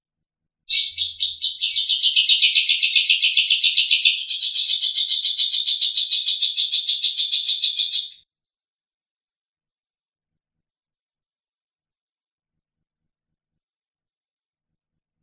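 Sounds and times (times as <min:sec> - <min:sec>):
long-tailed shrike trilling: 0:00.7 - 0:08.2.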